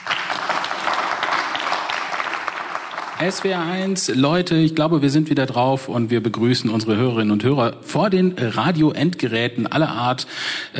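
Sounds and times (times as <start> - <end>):
audience applause: 0.0 - 4.0
speech: 3.2 - 10.7.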